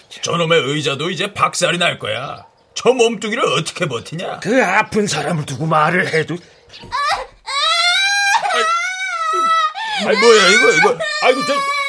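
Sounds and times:
speech: 0.2s - 7.1s, 10.0s - 11.8s
small child crying after falling down: 6.9s - 11.8s.

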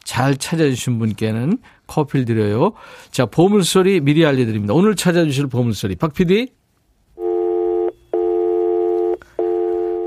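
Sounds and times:
speech: 0.2s - 6.6s
telephone busy signal: 7.2s - 10.0s.

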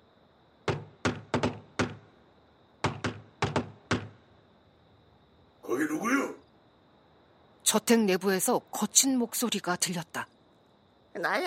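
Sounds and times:
knocking on a door: 0.6s - 2.2s, 2.8s - 4.3s
speech: 7.7s - 10.4s, 11.2s - 11.4s.

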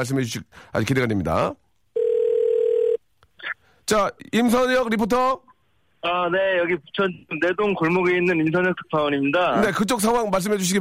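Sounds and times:
speech: 0.0s - 1.6s, 3.9s - 10.7s
telephone dial tone when calling: 2.0s - 3.0s.

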